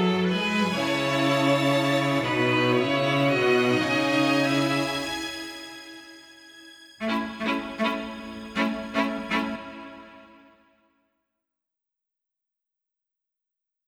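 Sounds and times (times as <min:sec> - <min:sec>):
instrumental strings only: 0:00.0 - 0:10.6.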